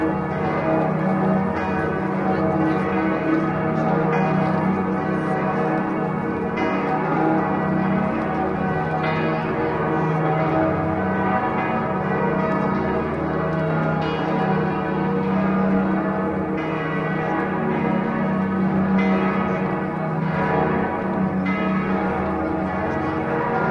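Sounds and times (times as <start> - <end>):
big clock bells in Salzburg: 0.0 - 23.6.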